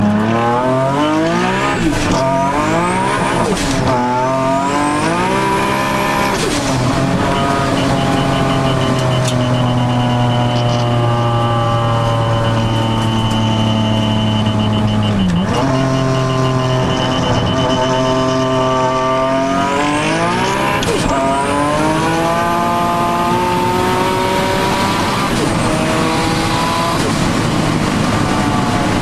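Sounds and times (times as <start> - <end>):
Nissan 350Z engine: 0.0 - 29.0.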